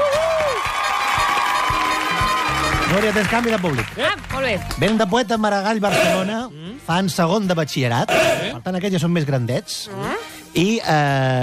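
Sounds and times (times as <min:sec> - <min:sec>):
audience applause: 0:00.0 - 0:05.0
speech: 0:02.9 - 0:11.4.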